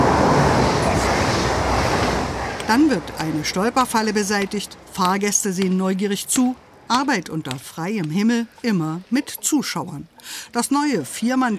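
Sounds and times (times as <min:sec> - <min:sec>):
ICE high-speed train rushing past on the tracks: 0:00.0 - 0:05.0
speech: 0:02.7 - 0:11.5.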